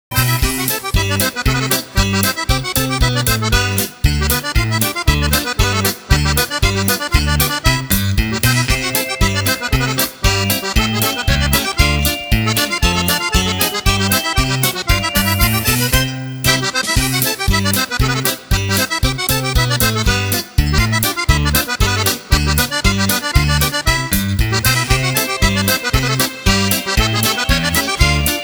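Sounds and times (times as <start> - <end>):
polka music on radio: 0.1 - 28.4.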